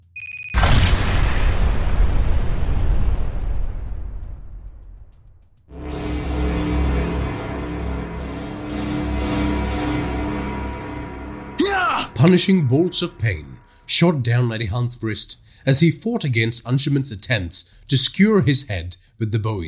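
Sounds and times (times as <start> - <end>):
bomb explosion set off with a remote detonator: 0.6 - 12.7
sustained musical drone: 5.7 - 14.5
speech: 12.2 - 19.6.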